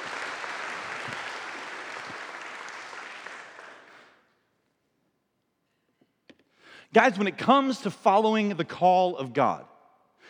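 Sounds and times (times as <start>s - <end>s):
audience applause: 0.0s - 4.2s
speech: 6.9s - 9.7s.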